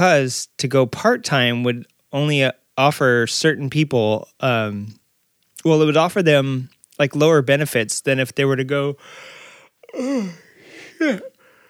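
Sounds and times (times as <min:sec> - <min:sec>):
speech: 0:00.0 - 0:05.0, 0:05.6 - 0:09.3, 0:09.9 - 0:10.4, 0:11.0 - 0:11.3
person yawning: 0:09.8 - 0:11.6.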